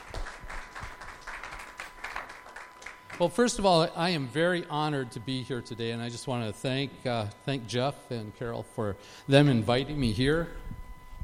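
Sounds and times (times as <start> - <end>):
light audience applause at a church gathering: 0.0 - 3.4
speech: 3.2 - 10.7.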